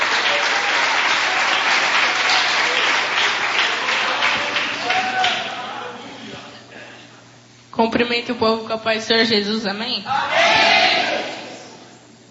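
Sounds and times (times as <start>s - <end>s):
audience applause: 0.0s - 5.9s
speech: 7.8s - 11.0s.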